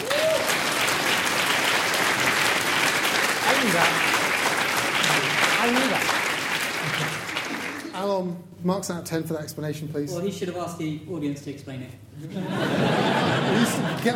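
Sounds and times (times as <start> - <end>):
faint voices and whoops: 0.0 - 0.6
crowd applauding: 0.0 - 8.0
speech: 5.6 - 6.1, 8.1 - 14.1
laughter: 6.7 - 7.9, 12.2 - 14.1.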